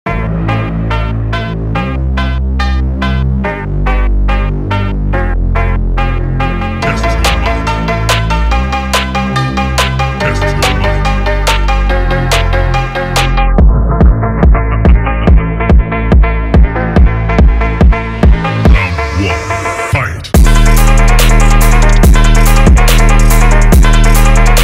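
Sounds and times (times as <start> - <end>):
phonk remix: 0.1 - 24.6.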